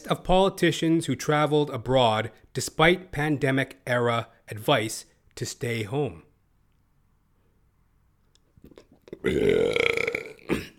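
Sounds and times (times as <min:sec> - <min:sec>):
speech: 0:00.0 - 0:06.3, 0:08.7 - 0:10.0
faint mouth sounds: 0:08.3 - 0:10.7
burp into the microphone: 0:09.0 - 0:10.7.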